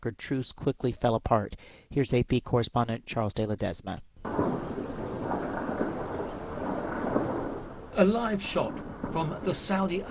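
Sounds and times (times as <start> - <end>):
speech: 0.0 - 4.6, 8.0 - 10.0
artillery fire in a city: 4.3 - 10.0
explosions in a city: 4.3 - 10.0.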